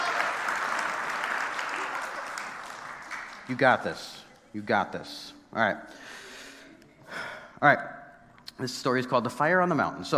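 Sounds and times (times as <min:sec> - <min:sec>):
people clapping: 0:00.0 - 0:04.5
speech: 0:03.5 - 0:06.2, 0:07.6 - 0:08.0, 0:08.6 - 0:10.1.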